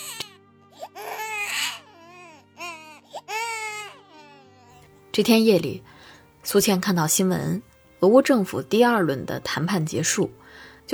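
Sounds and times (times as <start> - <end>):
babies crying: 0.0 - 4.8
speech: 5.2 - 5.9, 6.5 - 10.9.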